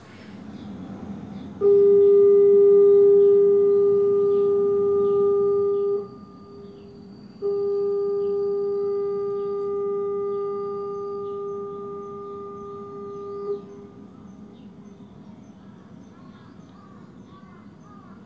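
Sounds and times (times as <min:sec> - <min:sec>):
ferry horn: 0:01.6 - 0:14.2.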